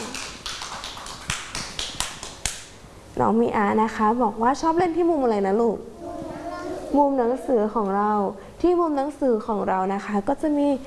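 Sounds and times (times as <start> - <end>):
children clapping hands: 0.0 - 2.7
speech: 3.2 - 5.9, 6.9 - 10.8.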